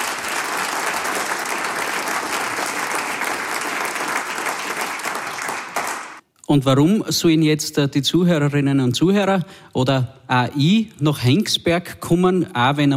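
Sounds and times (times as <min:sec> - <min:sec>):
applause: 0:00.0 - 0:06.2
speech: 0:06.5 - 0:12.9.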